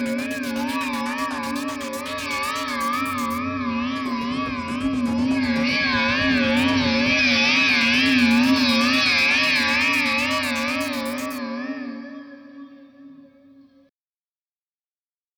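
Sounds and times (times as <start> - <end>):
guitar through delay reverb pedal: 0.0 - 11.4.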